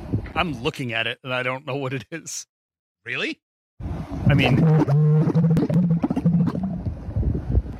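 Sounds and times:
speech: 0:00.4 - 0:03.4, 0:04.3 - 0:05.1
camel vocalization: 0:04.2 - 0:06.9.

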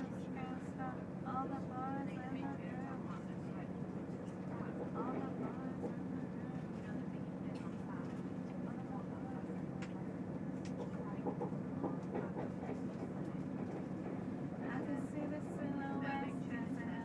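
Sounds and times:
train noise: 0:00.0 - 0:17.0.

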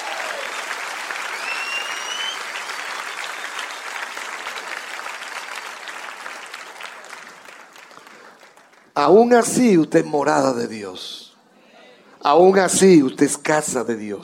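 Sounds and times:
audience applause: 0:00.0 - 0:08.9
speech: 0:09.0 - 0:11.2, 0:12.2 - 0:14.2.

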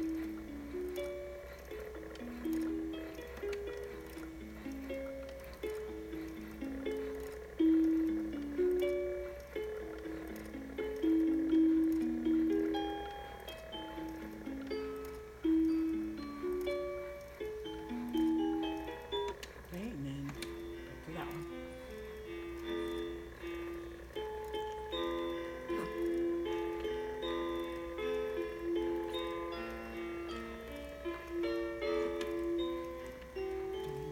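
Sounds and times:
crib mobile motor ticking and whirring: 0:00.0 - 0:34.1
crib mobile music-box lullaby: 0:00.0 - 0:34.1.

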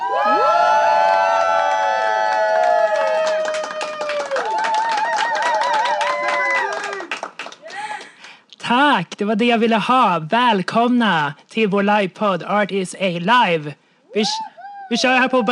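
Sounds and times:
live crowd cheering and whooping: 0:00.0 - 0:07.2, 0:14.2 - 0:15.4
dense rapid clapping: 0:02.6 - 0:08.4
speech: 0:09.2 - 0:15.4.

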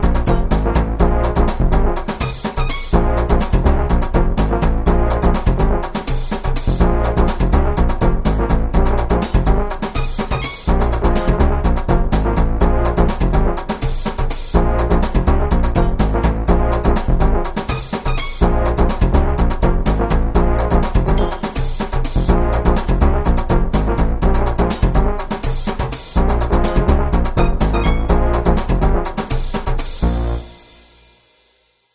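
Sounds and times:
virtual brass in latin funk Indian fusion: 0:00.0 - 0:31.4
virtual timbale percussion: 0:21.2 - 0:22.0
virtual sitar in latin funk Indian fusion: 0:27.4 - 0:28.3.

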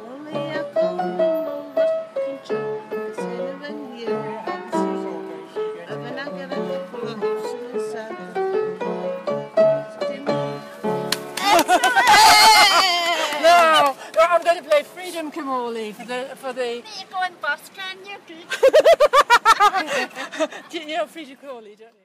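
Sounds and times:
piano singalong: 0:00.0 - 0:11.6
laughter: 0:11.4 - 0:14.3, 0:18.5 - 0:21.0.

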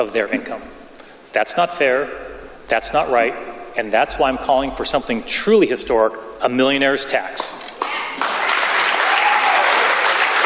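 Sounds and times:
speech: 0:00.0 - 0:08.3
Democrat legislators clapping: 0:07.8 - 0:10.4.

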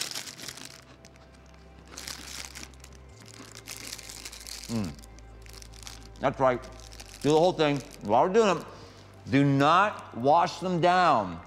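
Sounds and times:
person eating crackers: 0:00.0 - 0:08.0
speech: 0:04.7 - 0:05.0, 0:06.2 - 0:11.4.

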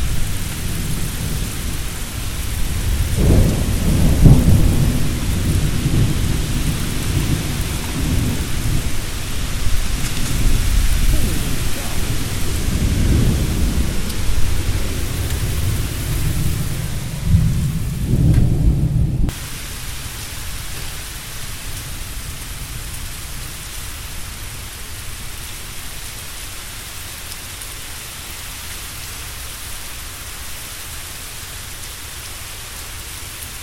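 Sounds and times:
thunderstorm in Louisville: 0:00.0 - 0:19.6.

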